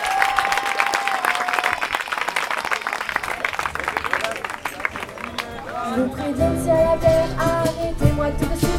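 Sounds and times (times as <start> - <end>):
audience applause: 0.0 - 6.1
speech: 6.0 - 8.6.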